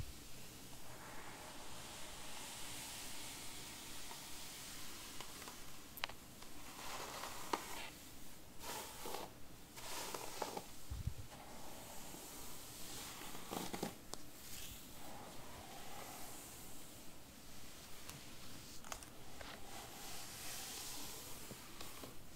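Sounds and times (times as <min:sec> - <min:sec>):
hair brushed in soft hissing strokes: 0:00.1 - 0:08.0, 0:08.6 - 0:10.7, 0:11.3 - 0:17.2, 0:17.7 - 0:22.3.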